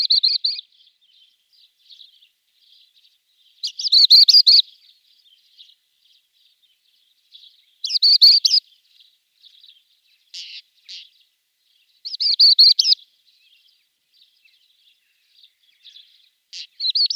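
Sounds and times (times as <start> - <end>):
pied wheatear song: 0.0 - 2.9, 3.6 - 5.7, 7.3 - 11.3, 12.0 - 13.7, 14.5 - 17.1.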